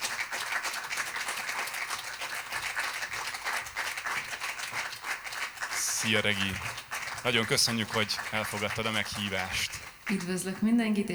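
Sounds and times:
audience applause: 0:00.0 - 0:10.3
speech: 0:06.0 - 0:11.1.

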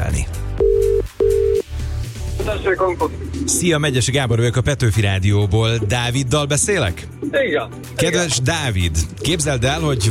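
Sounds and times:
telephone line tone as a radio host places a call: 0:00.6 - 0:01.6
speech: 0:02.6 - 0:10.0.

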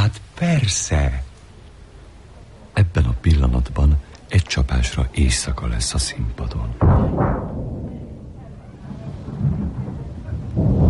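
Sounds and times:
speech: 0:00.1 - 0:01.3, 0:02.9 - 0:07.7
thunder rumbling: 0:06.8 - 0:10.8.

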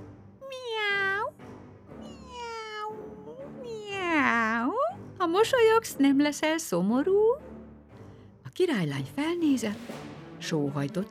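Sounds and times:
cat meowing: 0:00.4 - 0:01.3, 0:02.0 - 0:04.4
speech: 0:05.4 - 0:07.5, 0:08.6 - 0:11.0.

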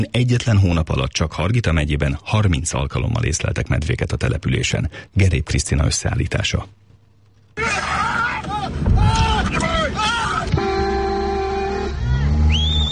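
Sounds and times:
speech: 0:00.0 - 0:06.8
low engine rumble: 0:07.4 - 0:12.9
people shouting: 0:07.6 - 0:12.5
car horn honking: 0:10.0 - 0:12.9.

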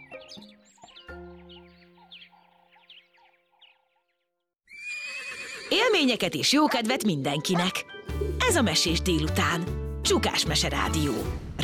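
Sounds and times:
speech: 0:00.3 - 0:00.6, 0:05.7 - 0:11.6
horse neighing: 0:04.7 - 0:06.2.

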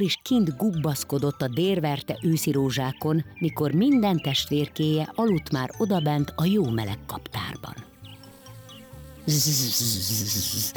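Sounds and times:
speech: 0:00.0 - 0:07.9, 0:09.3 - 0:10.7
bee buzzing: 0:06.3 - 0:10.7.

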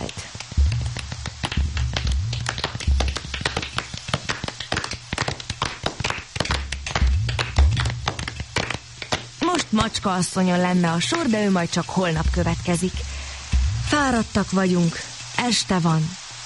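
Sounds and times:
small group clapping: 0:00.0 - 0:10.0
low hum: 0:00.5 - 0:04.0, 0:06.4 - 0:09.4, 0:10.6 - 0:15.4
speech: 0:09.7 - 0:13.1, 0:14.0 - 0:16.2.

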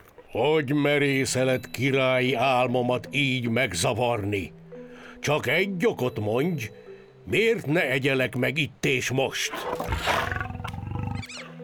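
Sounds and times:
speech: 0:00.3 - 0:04.6, 0:05.2 - 0:10.5
lion roaring: 0:09.5 - 0:11.6.

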